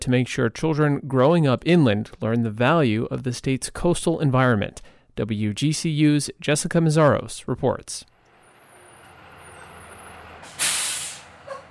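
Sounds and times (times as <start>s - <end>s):
speech: 0.0s - 8.1s
school bus air brakes hissing on arrival: 9.4s - 11.6s.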